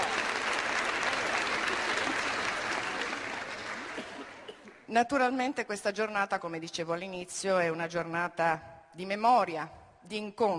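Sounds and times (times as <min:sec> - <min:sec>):
crowd applause: 0:00.0 - 0:04.8
speech: 0:04.9 - 0:10.5.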